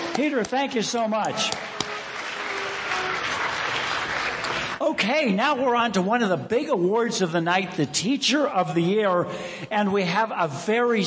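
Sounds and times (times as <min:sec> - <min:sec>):
audience applause: 0:00.0 - 0:04.8
speech: 0:00.2 - 0:01.8, 0:04.8 - 0:11.0.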